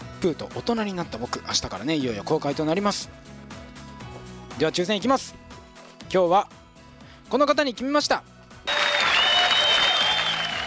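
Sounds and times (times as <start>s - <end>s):
speech: 0.2s - 3.4s, 4.6s - 5.4s, 6.1s - 6.6s, 7.3s - 8.3s
audience applause: 8.7s - 10.6s.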